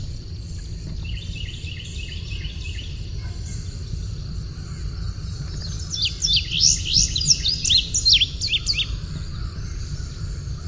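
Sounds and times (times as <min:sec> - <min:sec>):
steady low noise: 0:00.0 - 0:10.6
Indigo bunting singing: 0:01.0 - 0:10.6.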